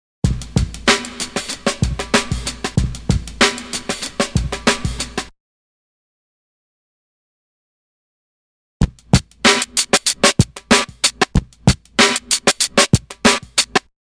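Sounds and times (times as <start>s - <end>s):
drum loop: 0.3s - 5.2s, 8.8s - 13.9s.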